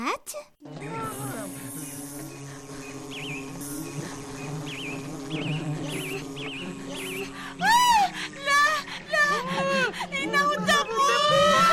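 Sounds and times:
wasp buzzing inside a beehive: 0.6s - 11.7s.

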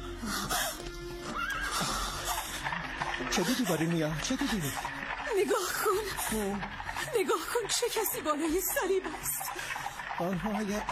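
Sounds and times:
horse-drawn cart hoof clops: 0.8s - 10.9s
horse of a horse-drawn cart whinnying: 1.2s - 2.4s
laughter: 1.8s - 9.6s
speech: 3.4s - 10.9s.

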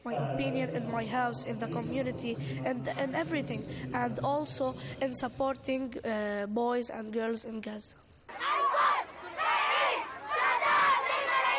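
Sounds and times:
speech: 0.0s - 8.4s
protest crowd shouting in Beirut: 8.3s - 11.5s.

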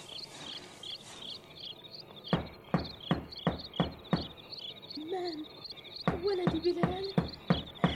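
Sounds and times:
knocking on a door: 2.3s - 4.4s, 6.0s - 7.9s
speech: 5.2s - 5.6s, 6.2s - 7.2s.

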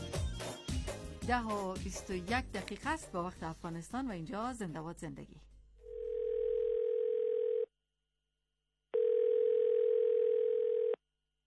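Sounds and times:
speech: 1.3s - 5.5s
ringback tone of an outgoing telephone call: 5.9s - 7.7s, 9.0s - 11.0s.

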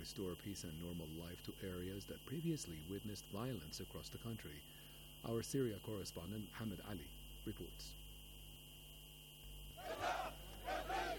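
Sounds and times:
speech: 0.0s - 8.0s
crowd cheering: 9.8s - 11.1s.

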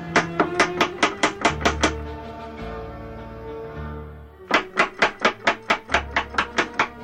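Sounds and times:
rapid knocking on a door: 0.1s - 2.0s, 4.5s - 7.0s.

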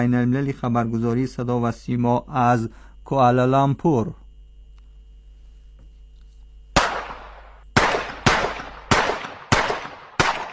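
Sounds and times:
speech: 0.0s - 4.2s
rapid gunshots: 6.8s - 10.5s.

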